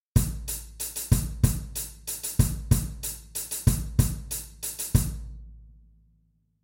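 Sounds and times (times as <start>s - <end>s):
cymbal: 0.2s - 5.3s.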